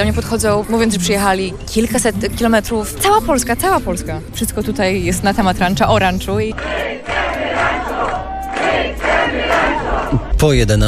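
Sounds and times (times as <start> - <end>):
speech: 0.0 - 7.7, 10.4 - 10.8
crowd of fans singing a chant-like melody: 6.4 - 10.3.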